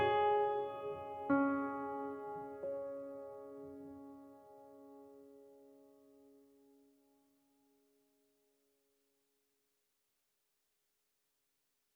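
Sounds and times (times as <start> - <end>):
piano music: 0.0 - 6.6.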